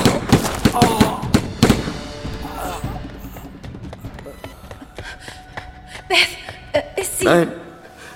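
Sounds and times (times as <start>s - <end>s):
gunshots: 0.0s - 2.2s
speech: 7.3s - 7.6s.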